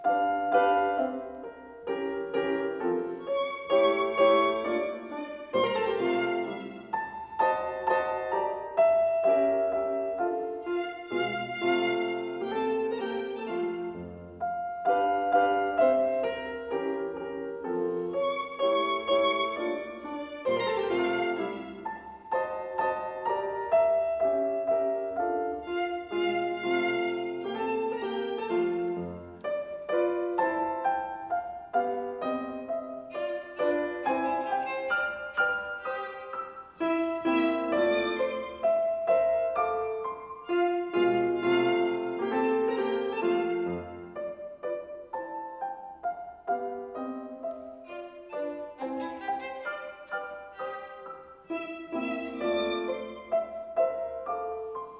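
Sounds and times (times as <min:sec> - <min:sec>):
violin sonata in F major: 0:00.0 - 0:54.9.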